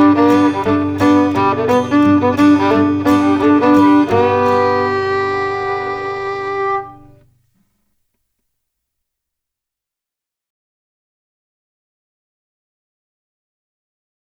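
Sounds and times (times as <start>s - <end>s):
Mississippi blues music field recording: 0.0s - 7.3s.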